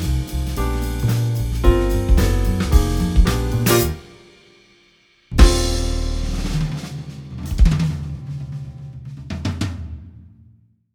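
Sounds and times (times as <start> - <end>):
jazz trio playing: 0.0 - 4.4, 5.3 - 8.4.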